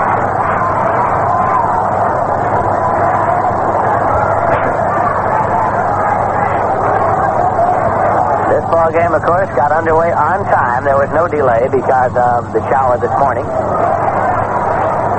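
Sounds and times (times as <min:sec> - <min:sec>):
baseball crowd roar: 0:00.0 - 0:15.1
speech: 0:08.8 - 0:14.0.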